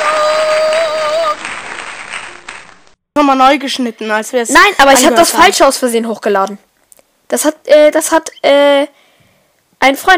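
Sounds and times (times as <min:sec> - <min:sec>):
applause: 0:00.0 - 0:03.0
speech: 0:03.2 - 0:06.7, 0:07.3 - 0:09.0, 0:09.8 - 0:10.1.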